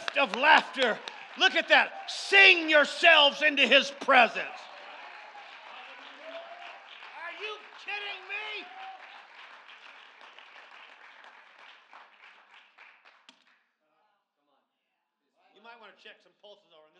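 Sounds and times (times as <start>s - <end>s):
church audience applauding: 0.0s - 13.4s
speech: 0.2s - 4.6s.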